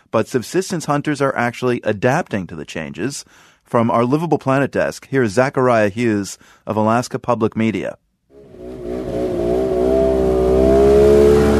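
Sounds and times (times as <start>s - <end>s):
speech: 0.1s - 8.0s
snowmobile engines whining: 8.4s - 11.5s.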